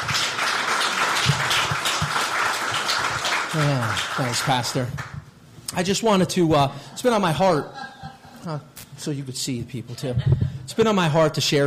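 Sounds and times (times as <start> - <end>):
crowd applauding: 0.0 - 5.2
speech: 3.6 - 5.1, 5.8 - 7.8, 8.4 - 11.6.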